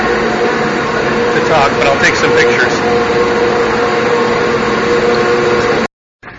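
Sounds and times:
cable car winding machinery droning inside a museum: 0.0s - 6.3s
speech: 1.5s - 3.8s.

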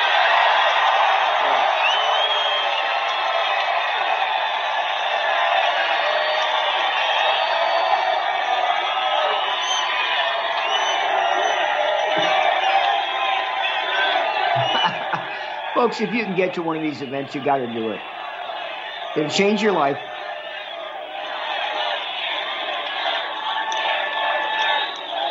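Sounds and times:
rally crowd cheering and whooping: 0.0s - 25.3s
laughter: 14.4s - 17.9s
speech: 15.8s - 18.1s, 19.2s - 20.1s.

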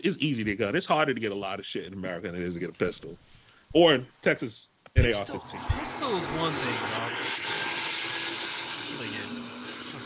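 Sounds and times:
speech: 0.0s - 7.6s
garbage disposal running: 7.1s - 10.0s.

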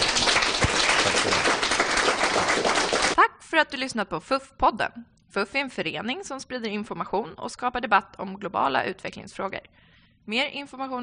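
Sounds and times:
audience applause: 0.0s - 3.2s
speech: 3.6s - 11.0s.

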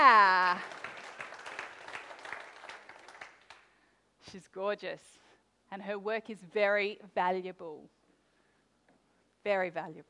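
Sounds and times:
audience clapping: 0.0s - 3.7s
speech: 4.3s - 8.0s, 9.4s - 10.0s.

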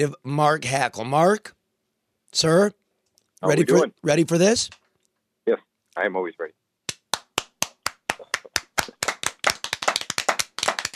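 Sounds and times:
speech: 0.0s - 1.6s, 2.3s - 2.8s, 3.4s - 4.8s, 5.5s - 6.6s
clapping: 6.9s - 10.9s.

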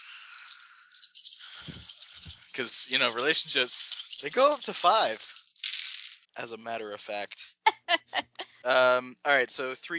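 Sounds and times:
dice rolling: 0.5s - 6.3s
speech: 2.6s - 5.3s, 6.4s - 7.4s, 8.1s - 9.9s
laughter: 7.7s - 9.1s.

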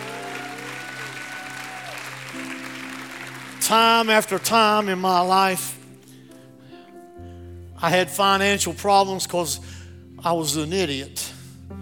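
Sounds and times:
audience hand clapping: 0.0s - 5.1s
speech: 3.7s - 5.8s, 7.8s - 11.3s.

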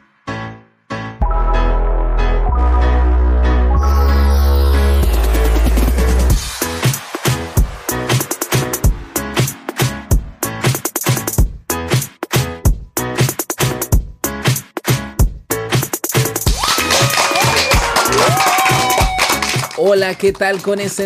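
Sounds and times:
rhythmic music with sharp percussive hits: 1.2s - 21.0s
high cheering or whistles: 16.5s - 19.8s
applause: 16.5s - 21.0s
speech: 19.9s - 21.0s.

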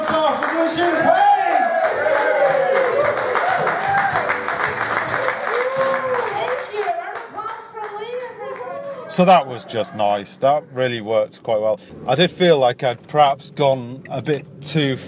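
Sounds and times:
audience whoops and cheers: 0.9s - 6.6s
speech: 9.2s - 15.0s.

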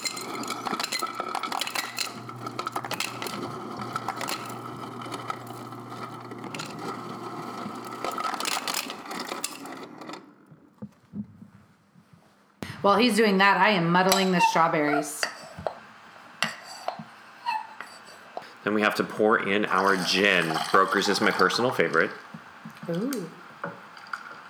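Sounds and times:
ice cubes put into cocktail shaker: 0.0s - 10.1s
speech: 12.8s - 15.2s, 18.7s - 22.3s, 22.9s - 23.4s.

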